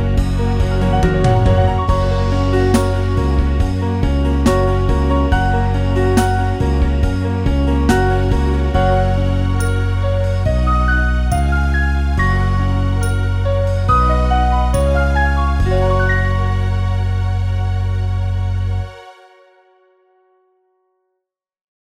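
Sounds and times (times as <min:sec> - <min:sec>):
piano ballade: 0:00.0 - 0:19.0.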